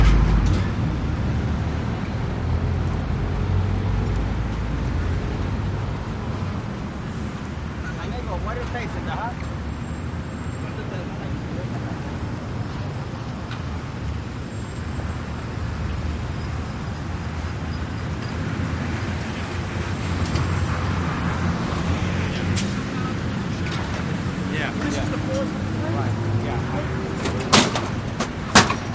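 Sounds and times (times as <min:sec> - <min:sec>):
cars passing by in a busy city: 0:00.0 - 0:28.9.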